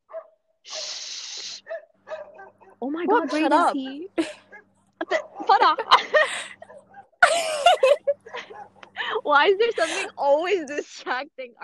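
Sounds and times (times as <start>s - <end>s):
neighbor's dog barking: 0.1s - 0.9s, 1.6s - 3.6s, 4.3s - 5.6s, 6.6s - 7.2s, 8.2s - 8.9s
speech: 2.8s - 4.4s, 5.5s - 6.3s, 9.3s - 11.6s
laughter: 5.0s - 10.2s.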